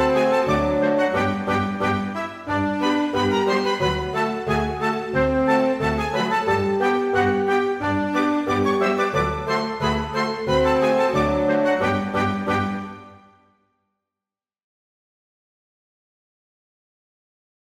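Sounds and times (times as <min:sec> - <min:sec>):
orchestra playing a polka: 0:00.0 - 0:13.2.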